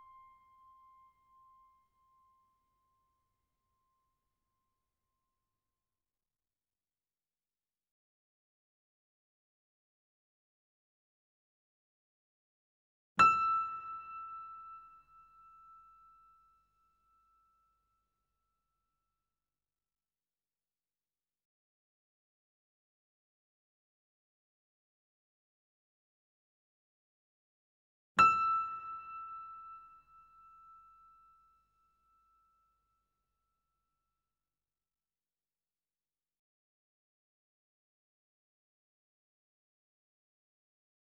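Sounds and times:
grand piano notes C6 E6 A6 with effects: 0:13.2 - 0:15.8, 0:28.2 - 0:30.9.

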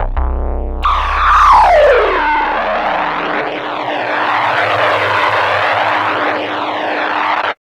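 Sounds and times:
hard and loud low techno blurp: 0:00.0 - 0:07.5.

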